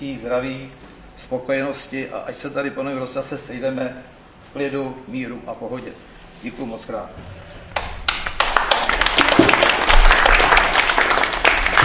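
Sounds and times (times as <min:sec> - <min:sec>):
speech: 0:00.0 - 0:07.5
one person clapping hands: 0:07.7 - 0:11.8.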